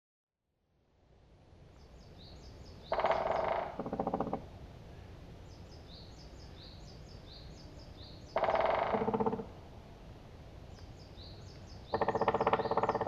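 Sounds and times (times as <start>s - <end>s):
black woodpecker rattling calls: 2.7s - 4.5s, 8.3s - 9.6s, 11.5s - 13.0s.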